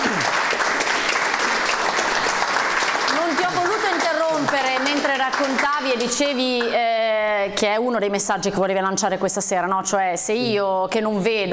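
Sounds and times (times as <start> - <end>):
audience applause: 0.0 - 6.9
speech: 4.5 - 11.5.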